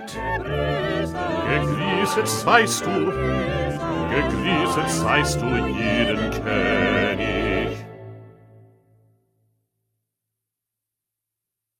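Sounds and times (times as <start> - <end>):
second bass part: 0.2 - 8.0.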